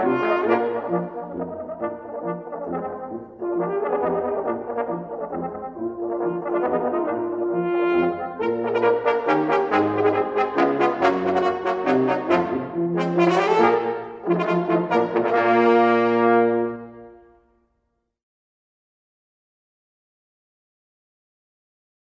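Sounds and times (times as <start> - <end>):
trombone quartet: 0.0 - 17.3.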